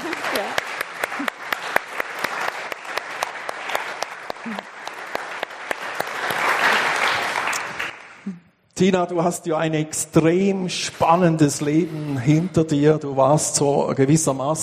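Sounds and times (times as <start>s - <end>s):
crowd applauding: 0.0s - 8.3s
speech: 8.8s - 14.6s.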